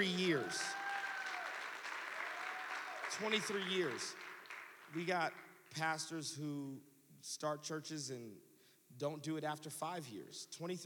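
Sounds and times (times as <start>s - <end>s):
speech: 0.0s - 0.8s, 3.2s - 4.2s, 4.9s - 10.8s
audience applause: 0.3s - 5.0s.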